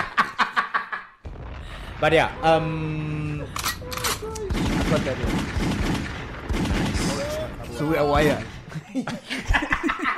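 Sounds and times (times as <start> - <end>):
laughter: 0.0 - 1.2, 8.7 - 10.1
speech: 2.0 - 6.1, 7.8 - 10.1
gunfire emptying a full magazine: 3.5 - 8.8.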